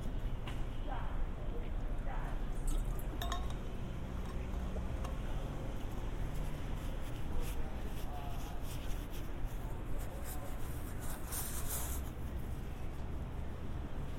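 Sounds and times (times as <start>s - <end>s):
traffic rumble in San Diego streets: 0.0s - 14.1s
faint voices: 0.6s - 14.1s.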